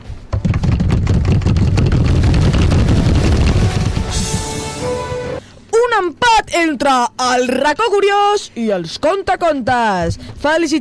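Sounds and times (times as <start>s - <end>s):
drum roll: 0.3s - 5.4s
speech: 6.0s - 10.7s.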